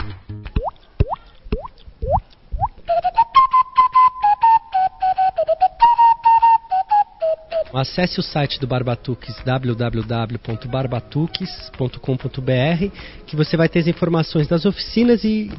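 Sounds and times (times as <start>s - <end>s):
low body percussion thumps: 0.0s - 2.8s
rising water-like mouth pops: 0.0s - 3.2s
fast rhythmic body percussion slaps and clicks: 0.0s - 4.1s, 7.4s - 13.0s, 13.7s - 15.5s
whistled melody: 2.8s - 8.2s
speech: 7.8s - 15.5s.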